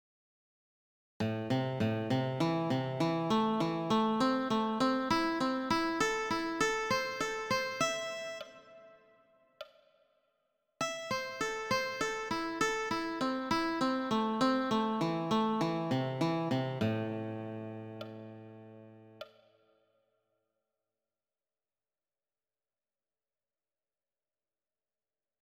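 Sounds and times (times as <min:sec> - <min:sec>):
A minor arpeggio: 0:01.2 - 0:09.0, 0:10.9 - 0:19.2.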